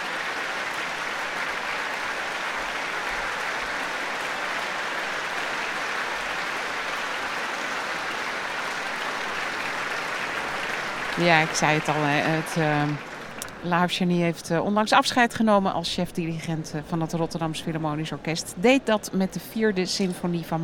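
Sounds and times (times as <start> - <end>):
concert audience applause for orchestra in Rotterdam: 0.0 - 13.8
speech: 11.2 - 20.6.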